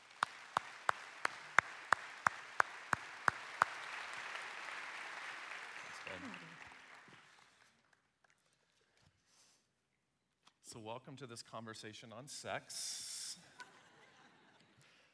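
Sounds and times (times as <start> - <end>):
sharp claps: 0.0 - 7.6
speech: 10.7 - 13.1.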